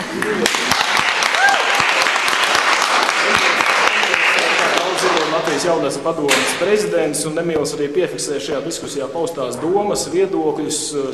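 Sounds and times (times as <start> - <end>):
audience applause: 0.0 - 5.7
speech: 0.2 - 0.6, 5.6 - 11.1.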